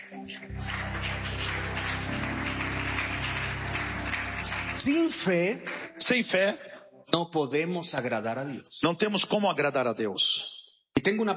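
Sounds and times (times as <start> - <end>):
audience applauding: 0.4 - 6.0
speech: 4.8 - 11.3.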